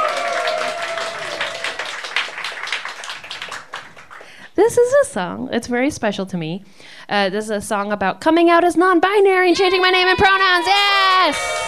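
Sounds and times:
sustained high shout: 0.0s - 1.8s, 9.5s - 11.6s
people whooping: 0.0s - 2.2s, 9.6s - 11.6s
crowd cheering and applauding: 0.0s - 4.4s, 10.1s - 11.6s
speech: 4.6s - 11.6s.

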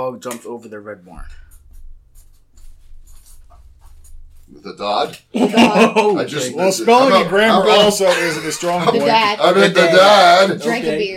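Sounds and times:
speech: 0.0s - 1.5s, 4.5s - 11.1s
low steady hum: 1.2s - 4.8s
Sharpie marker squeaking on paper: 1.5s - 4.4s
laughter: 5.3s - 6.2s, 7.4s - 10.0s.

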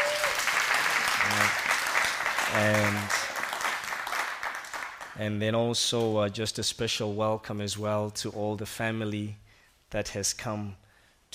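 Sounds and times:
people whooping: 0.0s - 1.7s, 2.5s - 3.6s
audience applauding: 0.0s - 5.2s
speech: 2.5s - 3.2s, 5.2s - 11.3s.

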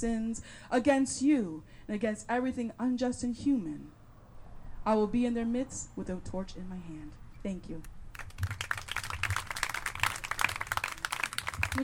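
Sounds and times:
speech: 0.0s - 4.0s, 4.8s - 8.6s
audience applause: 8.1s - 11.8s.

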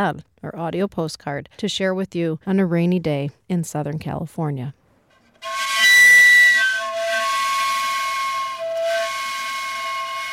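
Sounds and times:
speech: 0.0s - 4.8s
sweet potato vendor's steam cart whistle: 5.4s - 10.3s.

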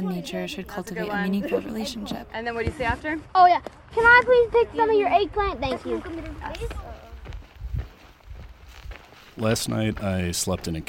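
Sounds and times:
speech: 0.0s - 6.9s, 9.4s - 10.8s
footsteps of a hiker walking back out of a canyon: 6.6s - 10.8s.

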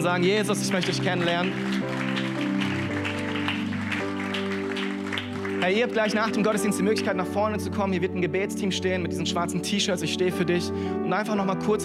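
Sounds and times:
speech: 0.0s - 2.0s, 5.6s - 11.8s
sustained keyboard chords: 0.0s - 11.8s
crowd clapping: 0.3s - 7.0s.

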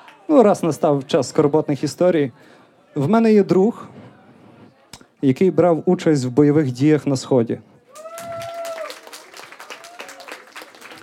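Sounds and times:
speech: 0.3s - 4.0s, 5.2s - 7.7s
high whoop: 7.9s - 10.6s
audience applauding: 7.9s - 11.0s.

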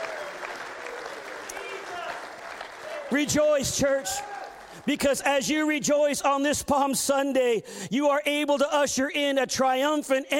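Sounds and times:
audience clapping hands: 0.0s - 5.5s
speech: 3.1s - 10.3s.

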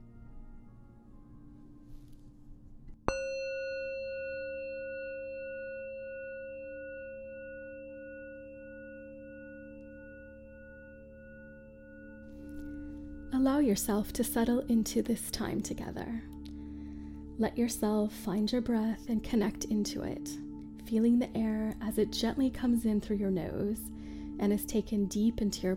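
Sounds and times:
meditation bell ringing: 3.1s - 13.4s
speech: 13.4s - 16.4s, 17.4s - 25.7s.

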